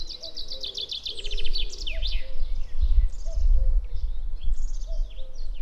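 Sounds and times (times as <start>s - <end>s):
cuckoo calling in a natural landscape: 0.0s - 5.5s.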